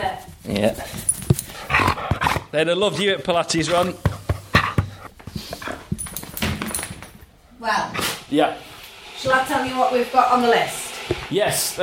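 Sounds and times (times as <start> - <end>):
speech: 0.2 - 1.1, 2.5 - 4.2, 8.3 - 8.6, 9.2 - 11.8
dog panting: 0.6 - 6.0.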